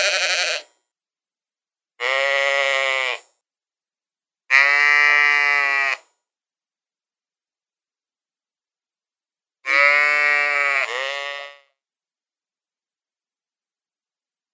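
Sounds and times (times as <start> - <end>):
sheep giving wavering bleats: 0.0 - 0.7, 2.0 - 3.3, 4.5 - 6.1, 9.6 - 11.7.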